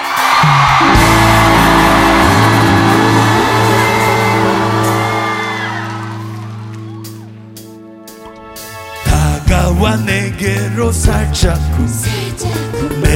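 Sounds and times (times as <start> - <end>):
crowd cheering: 0.0 - 7.8
speech: 10.0 - 13.1.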